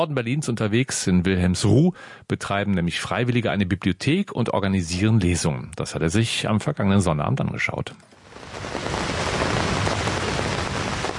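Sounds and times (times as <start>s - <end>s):
speech: 0.0s - 8.9s
heavy rain pouring on a pavilion roof: 8.2s - 11.1s.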